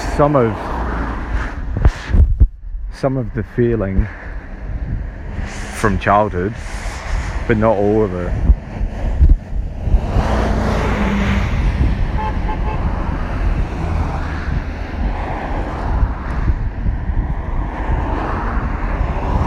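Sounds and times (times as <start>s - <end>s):
gusty wind buffeting the microphone: 0.0s - 19.4s
rumbling traffic: 0.0s - 19.4s
speech: 0.2s - 0.7s, 3.0s - 4.2s, 5.8s - 6.8s, 7.5s - 8.5s
car horn toots: 12.1s - 12.9s.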